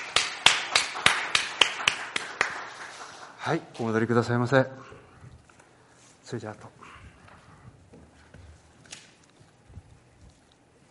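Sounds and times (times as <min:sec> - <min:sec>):
audience rhythmic applause: 0:00.0 - 0:03.4
speech: 0:03.4 - 0:04.9, 0:06.3 - 0:06.8.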